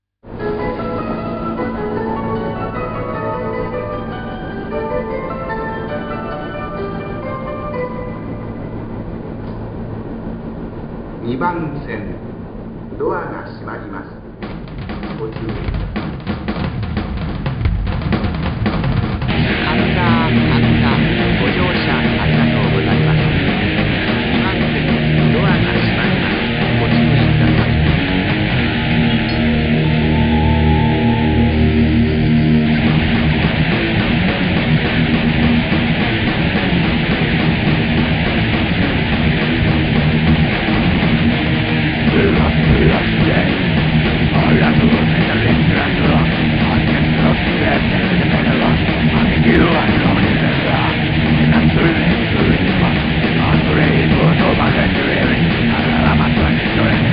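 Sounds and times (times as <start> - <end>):
heavy metal music: 0.2 - 11.4, 14.4 - 57.1.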